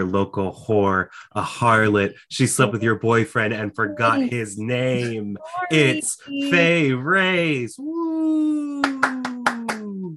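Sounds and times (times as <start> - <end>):
speech: 0.0 - 8.6
sharp hand claps: 8.8 - 10.1.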